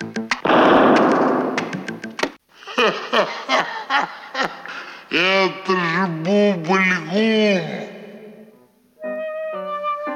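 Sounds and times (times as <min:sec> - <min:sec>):
sharp pops: 0:00.3 - 0:02.4
explosion of homemade explosive cans: 0:00.4 - 0:02.1
person laughing: 0:02.6 - 0:07.8.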